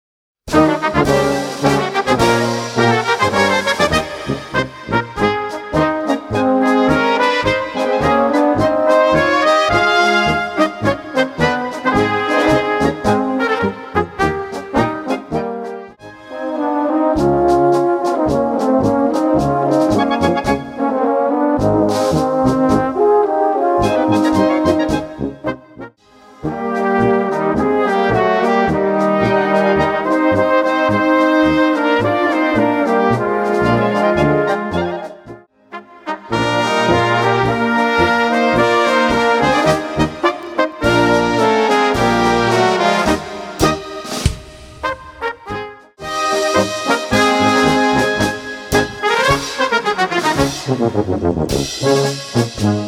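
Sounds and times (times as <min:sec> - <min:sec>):
brass band music: 0:00.5 - 0:52.8.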